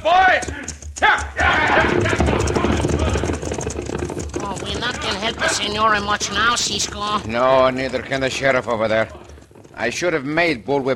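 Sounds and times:
horses galloping off as outlaws ride: 0.0s - 10.9s
voices shouting: 1.0s - 3.2s
speech: 5.6s - 9.2s, 9.8s - 10.9s.

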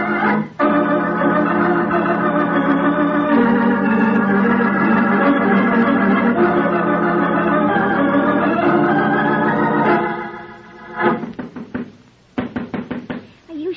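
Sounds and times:
steady musical tone: 0.0s - 11.4s
knocking on a door: 11.2s - 13.4s.

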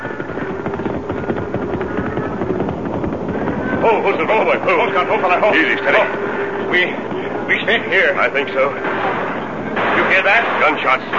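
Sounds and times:
longhorn cattle stampede: 0.0s - 6.1s
speech: 3.9s - 9.0s, 10.2s - 11.1s.

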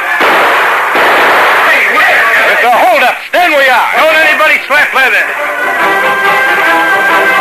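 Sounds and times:
warning gunshots fired into the ceiling: 0.2s - 2.9s
speech: 3.7s - 7.3s.

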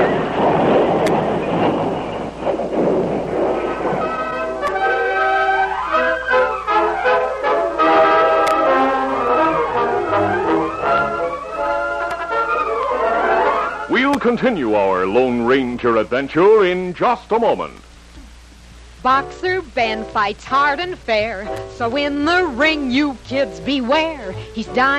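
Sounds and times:
stagecoach crashing: 0.0s - 14.5s
speech: 14.3s - 17.9s, 19.0s - 24.9s.

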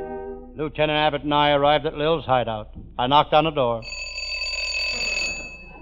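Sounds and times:
speech: 0.7s - 3.9s
doorbell ringing: 3.8s - 5.8s.

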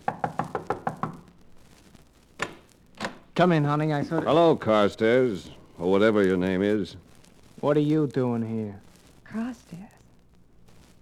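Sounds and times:
knocking on a door: 0.0s - 1.3s
speech: 3.4s - 7.0s, 7.6s - 10.0s.

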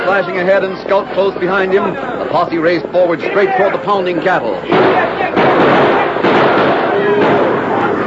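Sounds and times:
speech: 0.1s - 5.8s
gunshots fired into the air over steers: 4.7s - 8.0s.

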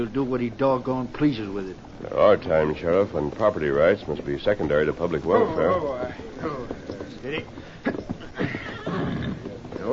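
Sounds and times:
speech: 0.0s - 8.1s
horse neighing: 5.3s - 9.9s.

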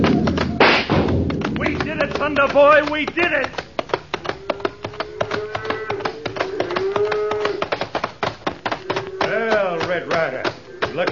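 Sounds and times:
clattering taps and knocks: 0.0s - 11.0s
speech: 2.3s - 3.6s
cattle lowing: 4.0s - 11.0s.

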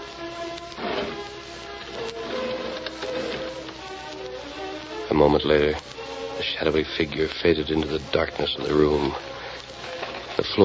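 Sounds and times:
window being opened: 0.8s - 1.3s, 2.0s - 3.7s
speech: 5.1s - 5.9s, 6.6s - 9.3s.

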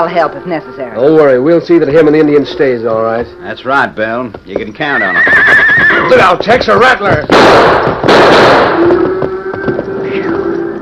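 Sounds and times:
speech: 0.0s - 9.2s
gunshots: 6.8s - 9.2s.

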